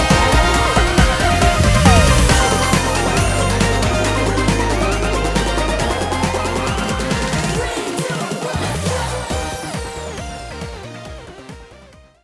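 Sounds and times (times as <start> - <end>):
background music: 0.0 - 12.2.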